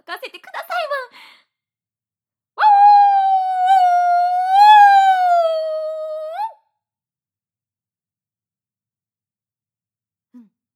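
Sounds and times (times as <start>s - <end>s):
speech: 0.1s - 1.4s
human voice imitating a wolf howl: 2.6s - 6.6s.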